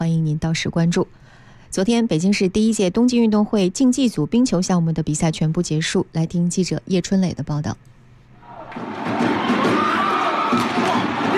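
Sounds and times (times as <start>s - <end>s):
speech: 0.4s - 7.9s
crowd cheering at an ice hockey rink in Beijing: 8.4s - 11.3s.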